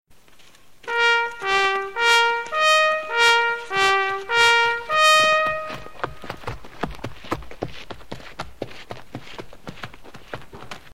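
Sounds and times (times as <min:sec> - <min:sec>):
bugle call: 0:00.9 - 0:06.4.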